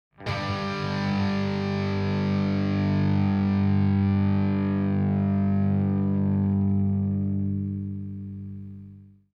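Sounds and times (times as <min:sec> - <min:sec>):
guitar power chord: 0:00.2 - 0:09.1.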